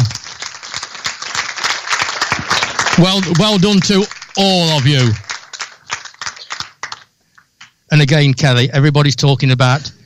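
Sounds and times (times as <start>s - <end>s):
audience applause: 0.0s - 7.7s
speech: 3.0s - 5.2s, 8.0s - 10.0s.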